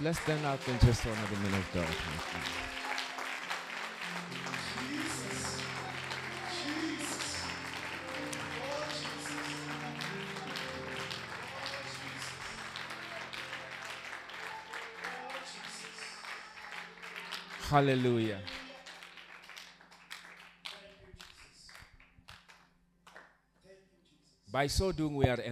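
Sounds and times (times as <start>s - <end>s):
speech: 0.0s - 2.8s, 17.7s - 18.5s, 24.6s - 25.5s
audience clapping hands: 0.0s - 23.4s.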